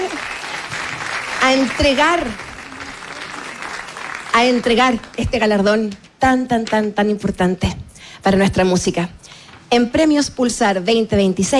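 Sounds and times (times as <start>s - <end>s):
audience applause: 0.0s - 5.2s
speech: 1.5s - 2.4s, 4.4s - 11.5s.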